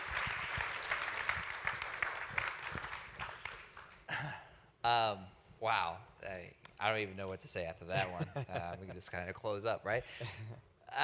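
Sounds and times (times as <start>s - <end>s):
audience applause: 0.0s - 4.0s
speech: 4.9s - 11.0s.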